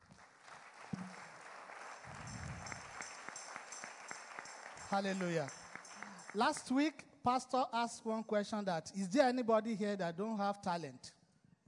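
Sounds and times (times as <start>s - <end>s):
audience clapping: 0.0s - 6.8s
speech: 4.9s - 5.6s, 6.3s - 11.2s.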